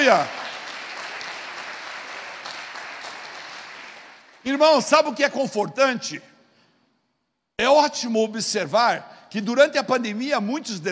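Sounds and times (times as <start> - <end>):
audience applause: 0.0 - 4.5
speech: 0.1 - 0.4, 4.4 - 6.3, 7.6 - 10.8.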